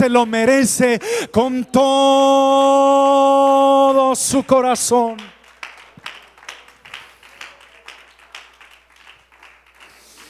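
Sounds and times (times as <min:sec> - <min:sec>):
speech: 0:00.0 - 0:05.4
audience applauding: 0:04.4 - 0:10.2.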